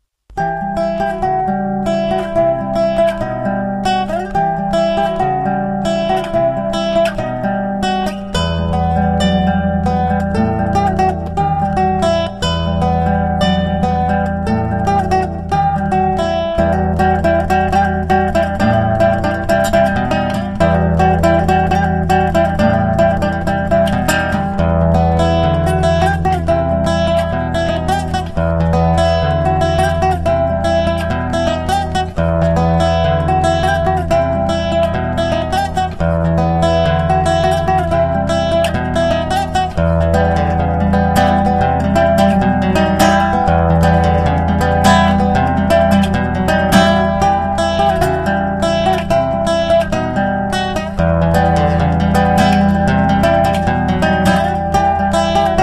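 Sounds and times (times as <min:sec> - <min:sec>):
guitar: 0:00.0 - 0:55.6.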